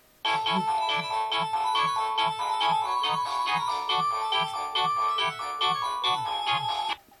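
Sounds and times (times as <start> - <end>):
Samsung SGH-E700 ringtone: 0.2 - 7.0.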